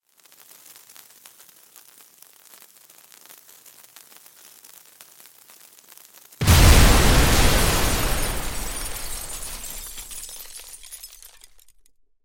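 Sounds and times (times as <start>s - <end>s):
dynamite exploding: 2.9s - 11.6s
dynamite fuse smouldering: 6.4s - 11.5s.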